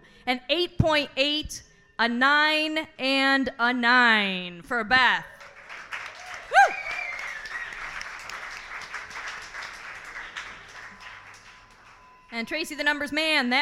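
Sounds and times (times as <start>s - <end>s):
speech: 0.2s - 5.3s, 12.4s - 13.6s
crowd applauding for a poet: 5.4s - 12.3s
sharp whistle or whoop: 6.2s - 8.1s.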